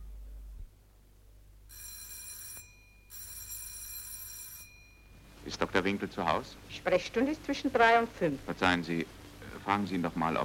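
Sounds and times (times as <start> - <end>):
doorbell ringing: 1.7 - 5.3
speech: 5.5 - 10.4.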